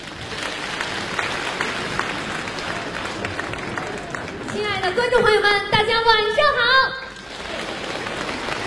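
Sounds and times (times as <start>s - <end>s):
audience applause for crosstalk comedy performers at a Beijing stage show: 0.0s - 5.4s, 7.1s - 8.6s
speech: 4.9s - 7.1s.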